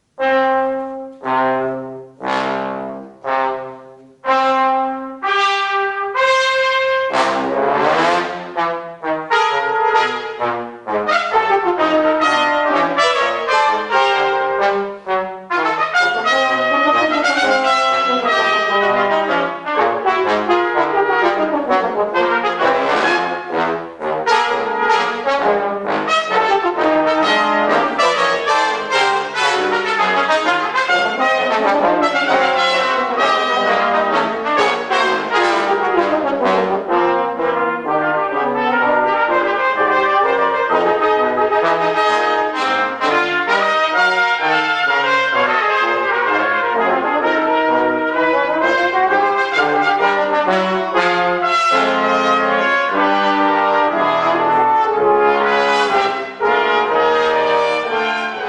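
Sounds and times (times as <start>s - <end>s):
walking brass music: 0.0s - 58.4s.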